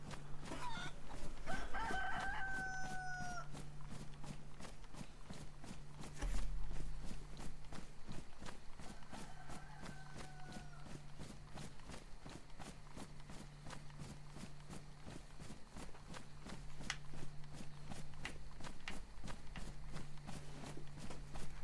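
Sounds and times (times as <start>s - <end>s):
steady rhythmic crunching steps: 0.0s - 21.6s
chicken cackling: 0.4s - 3.6s, 8.8s - 11.0s.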